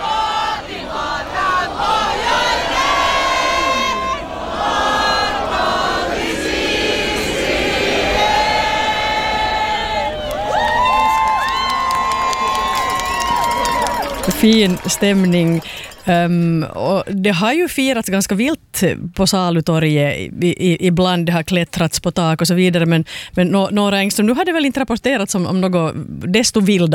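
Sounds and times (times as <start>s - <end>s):
crowd singing on Salutorget in Åbo: 0.0s - 11.0s, 13.2s - 16.9s
people shouting: 0.0s - 15.9s
crowd cheering on Salutorget in Åbo: 0.0s - 16.8s
speech: 14.4s - 26.9s.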